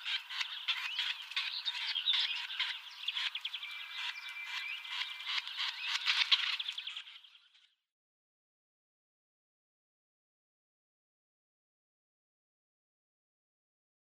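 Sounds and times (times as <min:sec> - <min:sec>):
Syrian woodpecker chattering rattles: 0:00.0 - 0:06.9.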